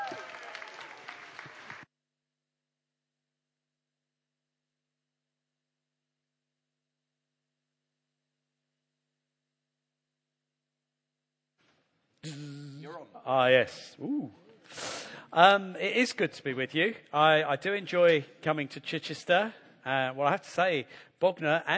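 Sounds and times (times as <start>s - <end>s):
church congregation clapping to welcome a preacher: 0.0s - 1.9s
speech: 12.2s - 21.7s.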